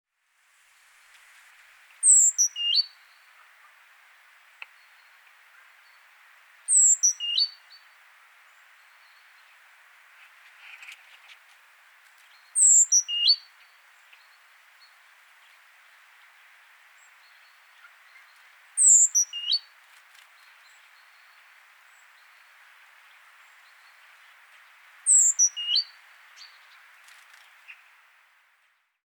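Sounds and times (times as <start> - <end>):
faint hiss: 0.1 - 29.0
great tit calling: 2.0 - 2.9, 6.7 - 7.5, 12.6 - 13.4, 17.8 - 19.6, 25.1 - 26.6.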